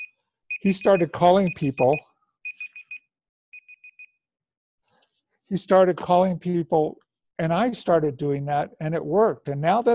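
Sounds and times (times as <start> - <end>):
timer alarm ringing: 0.0 - 4.2
speech: 0.6 - 2.1, 5.5 - 9.9.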